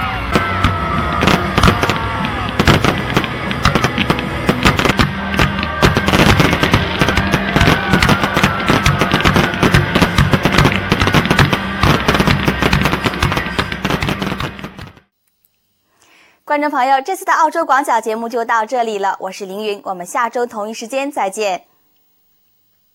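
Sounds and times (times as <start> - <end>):
farewell fireworks after an Australian Holden team stunt show crackling and popping: 0.2 - 15.1
speech: 16.6 - 21.7.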